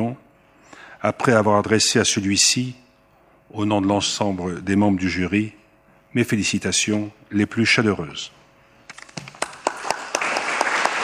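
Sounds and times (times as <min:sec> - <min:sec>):
speech: 0:01.0 - 0:02.8, 0:03.5 - 0:09.3
audience applause: 0:09.2 - 0:11.0.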